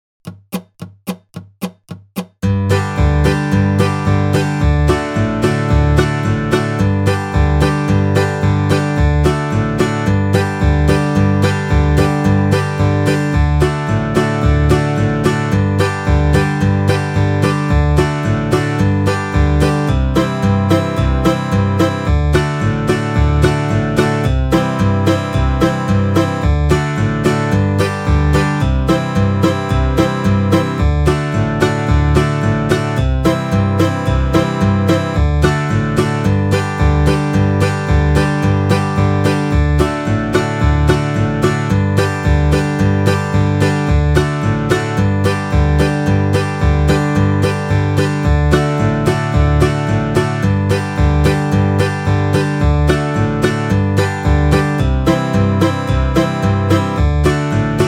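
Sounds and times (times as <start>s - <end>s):
old time fiddle tune: 2.4s - 57.8s.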